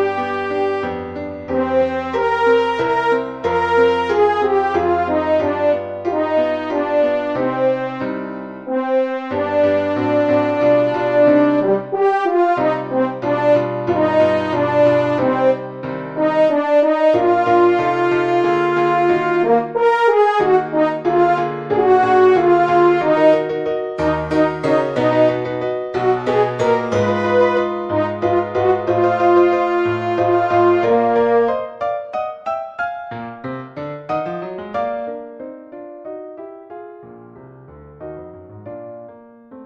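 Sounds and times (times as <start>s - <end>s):
E-flat French horn solo: 0.0s - 31.8s
piano: 0.0s - 39.6s.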